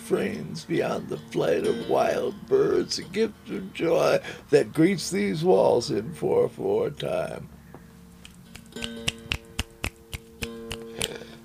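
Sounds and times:
low steady hum: 0:00.0 - 0:11.4
speech: 0:00.1 - 0:07.6
audience finger snapping as applause: 0:08.3 - 0:11.2.

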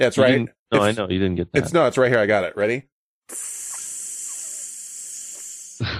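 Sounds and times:
speech: 0:00.0 - 0:03.6
video game creeper hissing: 0:03.3 - 0:05.9.

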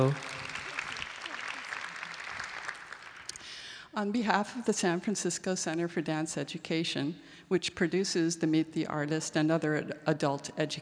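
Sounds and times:
speech: 0:00.0 - 0:00.3, 0:04.0 - 0:10.7
audience applause welcoming a principal ballet dancer: 0:00.0 - 0:03.4.

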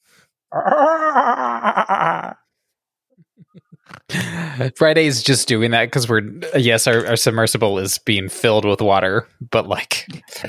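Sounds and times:
speech: 0:00.5 - 0:01.1, 0:04.6 - 0:10.4
voice imitating guttural underwater laugh: 0:00.5 - 0:02.4, 0:03.4 - 0:04.2.

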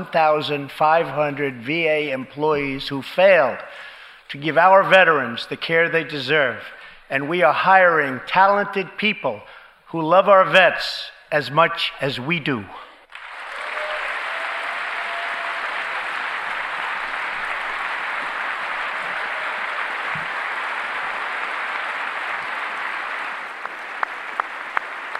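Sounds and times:
speech: 0:00.0 - 0:12.8
applause: 0:13.1 - 0:25.1.

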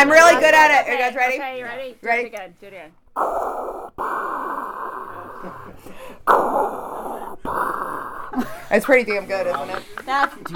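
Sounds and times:
speech: 0:00.0 - 0:05.6, 0:08.4 - 0:10.5
person imitating Darth Vader's raspy breathing: 0:03.1 - 0:09.4
laughter: 0:04.9 - 0:06.8, 0:07.9 - 0:10.5.

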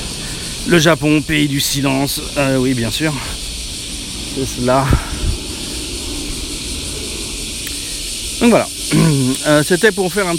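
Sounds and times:
airplane flying overhead: 0:00.0 - 0:10.3
speech: 0:00.7 - 0:03.4, 0:04.4 - 0:05.1, 0:08.4 - 0:10.3.

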